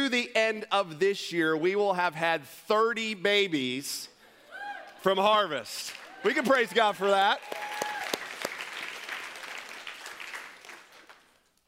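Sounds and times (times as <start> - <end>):
speech: 0.2 - 4.1, 5.0 - 7.6
audience applause: 6.0 - 11.4.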